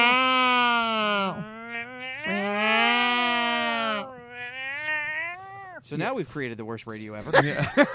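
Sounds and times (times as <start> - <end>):
person imitating a cat in heat: 0.0 - 5.8
speech: 5.9 - 7.9
laughter: 7.3 - 7.9.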